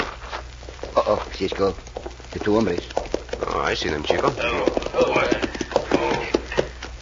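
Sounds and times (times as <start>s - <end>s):
horses' hooves clip-clopping on arrival at a cafe hitch rail: 0.0s - 7.0s
speech: 1.0s - 6.4s.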